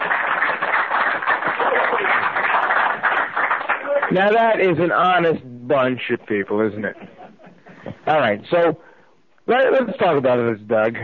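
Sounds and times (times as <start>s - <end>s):
audience applause: 0.0s - 4.6s
laughter: 1.4s - 2.5s, 6.8s - 8.1s
speech: 4.1s - 7.2s, 8.1s - 8.9s, 9.5s - 11.0s.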